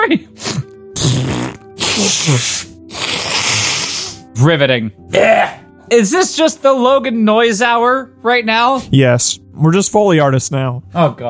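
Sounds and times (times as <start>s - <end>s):
person blowing nose: 0.4s - 4.3s
speech: 2.0s - 2.5s, 4.4s - 11.2s.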